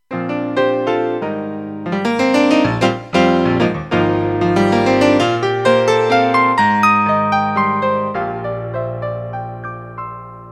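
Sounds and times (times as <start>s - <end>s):
piano: 0.0s - 10.5s.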